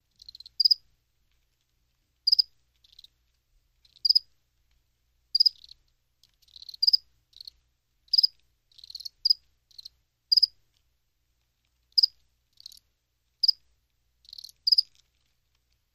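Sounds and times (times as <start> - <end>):
cricket chirping: 0.1 - 0.8, 2.3 - 3.1, 3.9 - 4.3, 5.3 - 5.8, 6.4 - 10.6, 12.0 - 12.8, 13.4 - 13.6, 14.2 - 15.0.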